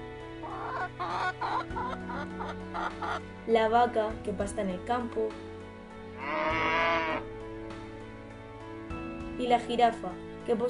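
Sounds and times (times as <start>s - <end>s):
chicken clucking: 0.4s - 3.2s
speech: 1.6s - 5.5s, 6.2s - 7.3s, 9.4s - 10.6s.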